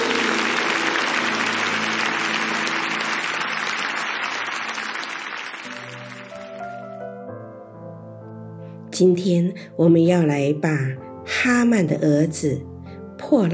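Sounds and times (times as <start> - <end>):
audience clapping: 0.0 - 6.8
speech: 9.0 - 12.7, 13.3 - 13.5.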